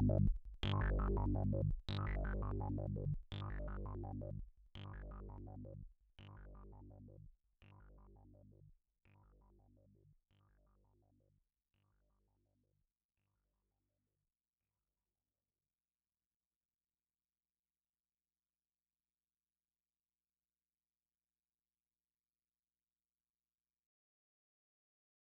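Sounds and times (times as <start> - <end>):
dry synthesizer mix: 0.0 - 10.6.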